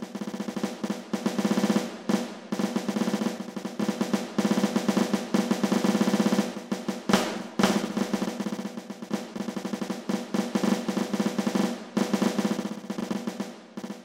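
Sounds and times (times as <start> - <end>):
snare drum playing: 0.0 - 14.0.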